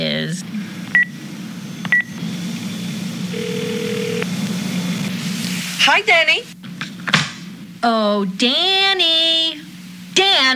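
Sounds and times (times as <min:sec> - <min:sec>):
constant low hum: 0:00.0 - 0:10.5
phone keypad beeps dialing a number back: 0:03.4 - 0:04.2
speech: 0:05.8 - 0:06.5, 0:07.8 - 0:09.6, 0:10.2 - 0:10.5.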